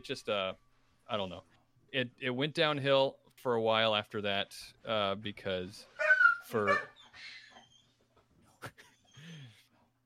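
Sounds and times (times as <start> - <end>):
speech: 0.0 - 7.4
dog freaking out with a sharp yelp: 6.0 - 8.0.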